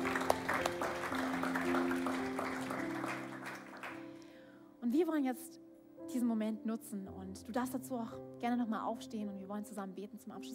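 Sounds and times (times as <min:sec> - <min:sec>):
audience applause: 0:00.0 - 0:04.2
speech: 0:05.0 - 0:10.5.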